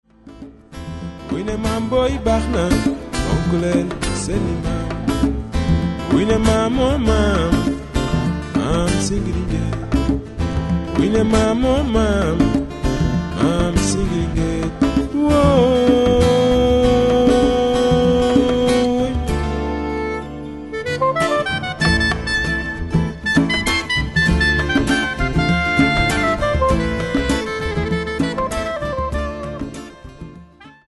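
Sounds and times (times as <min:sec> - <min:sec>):
Senegalese acoustic music: 0:00.0 - 0:30.8.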